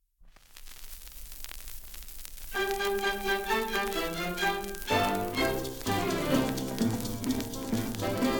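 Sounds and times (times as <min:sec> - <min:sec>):
samba music: 0:02.6 - 0:08.3.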